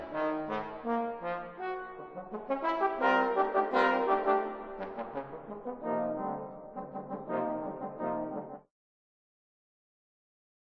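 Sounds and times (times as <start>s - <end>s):
four trombones playing a sonata: 0.0s - 8.6s.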